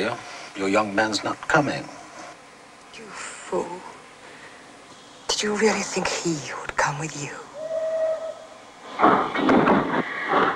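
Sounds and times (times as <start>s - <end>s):
speech: 0.0s - 2.0s, 3.5s - 3.9s, 5.4s - 7.4s
train starting to move, rumbling and clanking: 9.0s - 10.5s.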